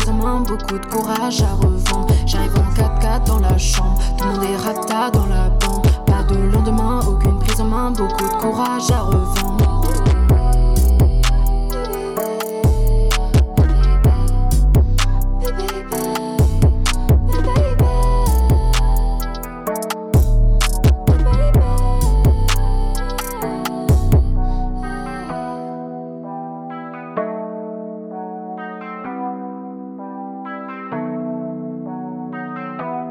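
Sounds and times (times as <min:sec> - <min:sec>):
rap song instrumental outro: 0:00.0 - 0:25.8
speech: 0:00.2 - 0:09.7.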